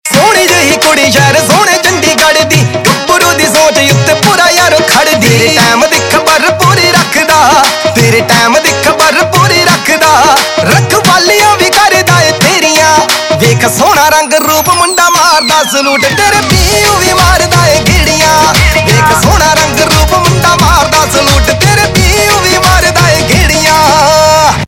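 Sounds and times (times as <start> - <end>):
Punjabi pop ringtone: 0.1 - 24.6.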